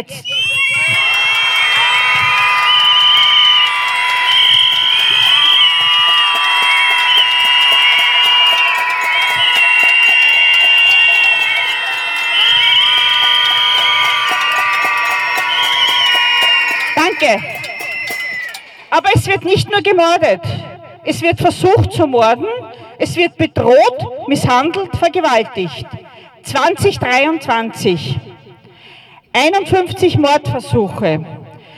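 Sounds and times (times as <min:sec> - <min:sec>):
speech: 0:00.0 - 0:01.0, 0:18.9 - 0:28.2, 0:29.3 - 0:31.3
large crowd screaming together: 0:00.0 - 0:18.9.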